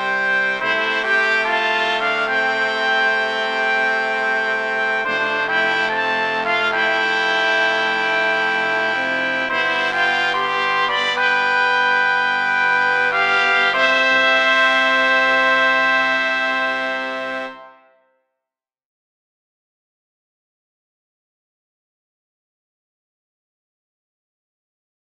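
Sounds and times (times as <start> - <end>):
fanfare in C for quint: 0.0 - 18.1.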